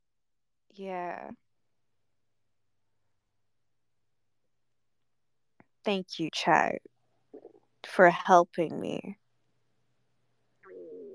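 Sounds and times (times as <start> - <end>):
speech: 0.7 - 1.4, 5.8 - 6.9, 7.8 - 9.2
stomach rumbling: 10.6 - 11.1.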